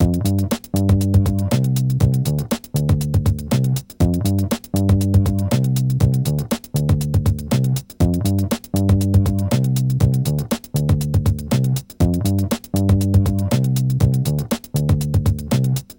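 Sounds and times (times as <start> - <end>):
bass loop with drums at 120 bpm: 0.0 - 15.9.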